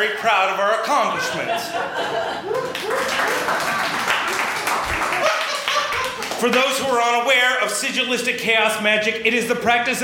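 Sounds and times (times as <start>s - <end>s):
speech: 0.0s - 4.1s, 6.4s - 10.0s
laughter: 1.0s - 6.5s
audience clapping: 2.4s - 7.2s.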